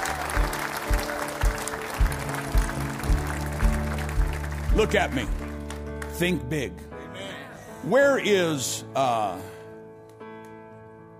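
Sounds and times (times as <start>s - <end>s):
audience clapping: 0.0s - 6.6s
steady low thumping beat: 2.0s - 5.4s
speech: 4.8s - 5.4s, 6.2s - 6.9s, 7.8s - 9.6s.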